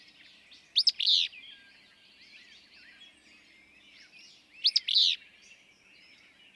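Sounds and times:
willow flycatcher singing: 0:00.6 - 0:01.6, 0:04.0 - 0:05.3.

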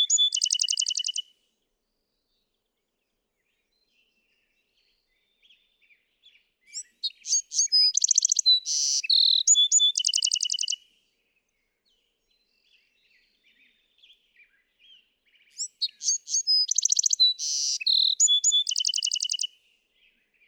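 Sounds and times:
Bewick's wren singing: 0:00.0 - 0:01.2, 0:06.7 - 0:10.8, 0:15.5 - 0:19.5.

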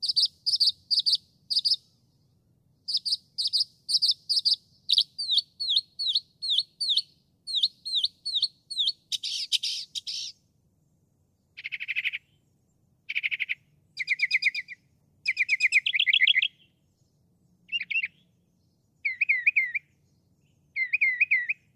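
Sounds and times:
northern mockingbird singing: 0:00.0 - 0:01.8, 0:02.9 - 0:10.4, 0:11.6 - 0:12.4, 0:13.1 - 0:16.8, 0:17.7 - 0:18.4, 0:19.0 - 0:21.7.

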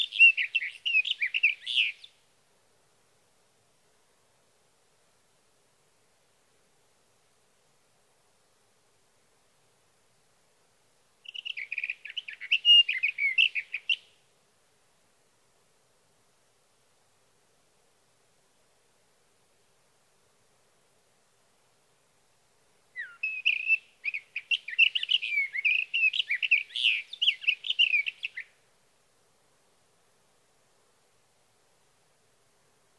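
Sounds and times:
Sage thrasher song: 0:00.0 - 0:02.2, 0:11.2 - 0:14.1, 0:23.0 - 0:28.6.

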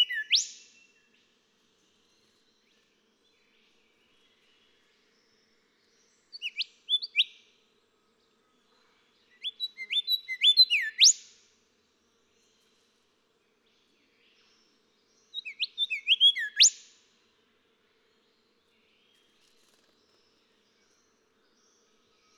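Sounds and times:
golden whistler song with whip note: 0:00.0 - 0:00.6, 0:06.4 - 0:07.3, 0:09.4 - 0:11.2, 0:15.4 - 0:16.8.

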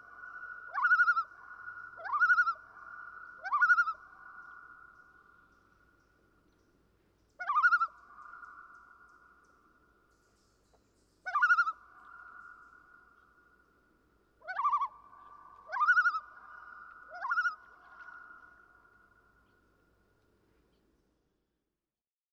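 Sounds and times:
common loon calls: 0:00.7 - 0:04.4, 0:14.4 - 0:18.5.

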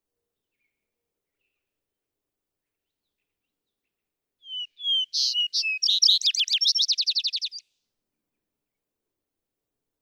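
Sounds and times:
vesper sparrow singing: 0:04.5 - 0:07.6.

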